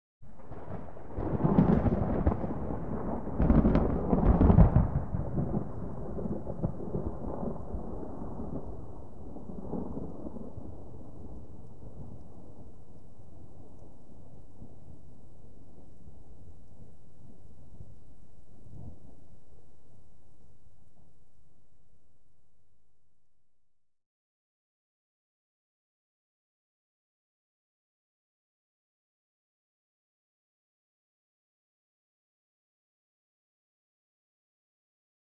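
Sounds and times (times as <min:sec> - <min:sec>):
rippling thunder panning right to left: 0:00.3 - 0:19.3.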